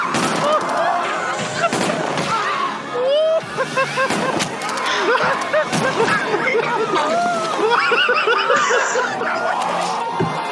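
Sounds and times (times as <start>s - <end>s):
video game gunshots: 0.1s - 0.7s, 1.6s - 2.5s
laughter: 0.3s - 2.1s, 2.9s - 10.4s.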